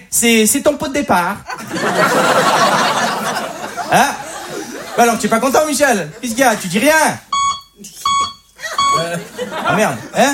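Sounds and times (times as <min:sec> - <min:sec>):
speech: 0:00.1 - 0:02.9, 0:03.9 - 0:04.2, 0:05.0 - 0:08.0, 0:08.9 - 0:10.3
laughter: 0:01.5 - 0:07.0, 0:08.6 - 0:10.3
short electronic beeps: 0:07.3 - 0:09.1.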